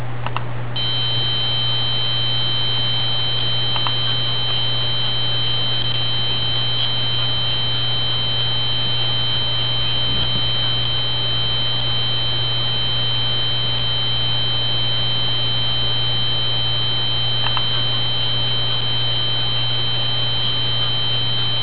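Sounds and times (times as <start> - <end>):
modulating tone: 0.8 - 21.6.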